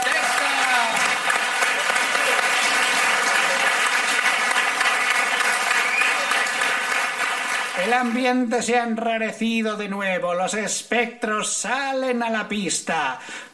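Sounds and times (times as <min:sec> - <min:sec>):
audience applause: 0:00.0 - 0:08.4
speech: 0:07.9 - 0:13.5.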